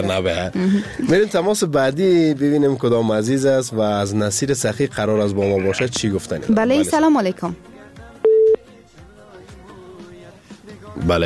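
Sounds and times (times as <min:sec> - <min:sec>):
speech: 0:00.0 - 0:07.7, 0:11.0 - 0:11.2
telephone line tone as a radio caller is connected: 0:08.2 - 0:08.6.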